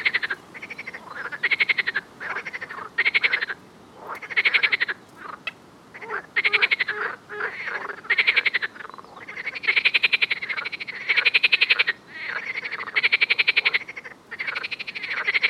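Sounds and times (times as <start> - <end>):
frog: 0.0 - 15.4.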